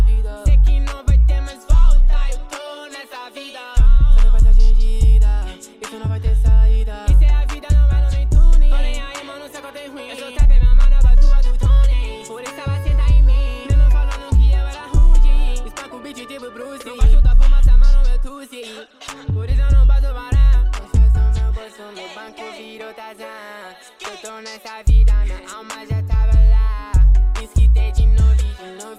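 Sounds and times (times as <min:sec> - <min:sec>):
deep bass: 0:00.0 - 0:02.5, 0:03.8 - 0:09.1, 0:10.4 - 0:15.8, 0:17.0 - 0:18.3, 0:19.3 - 0:21.6, 0:24.9 - 0:28.6.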